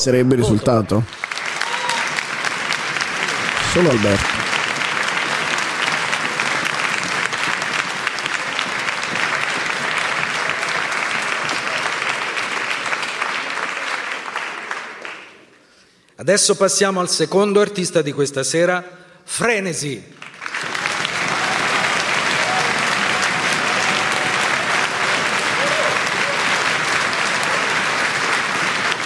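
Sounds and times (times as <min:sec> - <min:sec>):
speech: 0:00.0 - 0:01.2, 0:03.7 - 0:04.4, 0:16.2 - 0:20.2
audience applause: 0:00.4 - 0:15.5, 0:20.2 - 0:29.0
voice calling out: 0:03.6 - 0:04.4.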